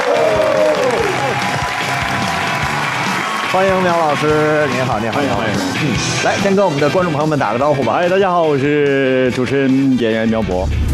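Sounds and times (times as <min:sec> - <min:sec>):
studio audience applause: 0:00.0 - 0:06.1
speech: 0:03.6 - 0:10.9.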